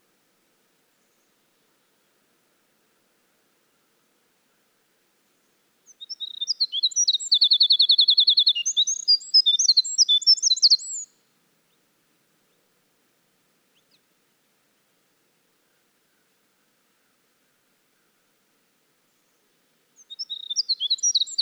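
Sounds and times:
Winter wren in full song: 0:05.9 - 0:11.1, 0:20.0 - 0:21.3.

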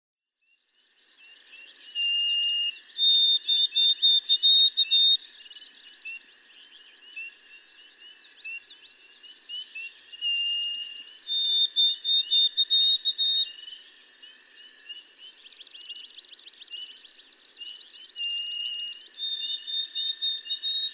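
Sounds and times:
white-throated sparrow singing pure whistles: 0:01.6 - 0:06.2, 0:08.5 - 0:13.8, 0:15.4 - 0:20.9.

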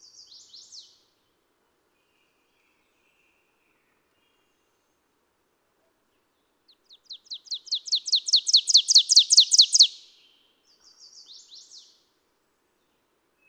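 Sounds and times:
ovenbird call: 0:07.3 - 0:10.0.

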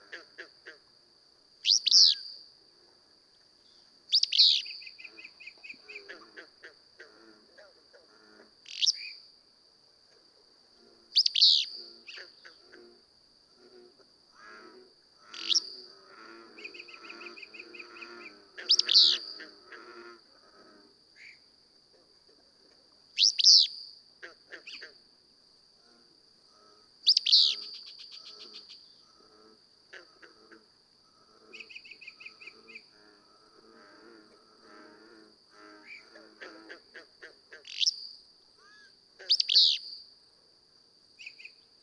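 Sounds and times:
Willow Flycatcher calling: 0:01.6 - 0:02.4, 0:04.1 - 0:06.4, 0:08.6 - 0:09.2, 0:11.2 - 0:12.6, 0:15.2 - 0:15.8, 0:16.6 - 0:19.5, 0:23.2 - 0:23.8, 0:27.0 - 0:29.1, 0:37.6 - 0:40.0.

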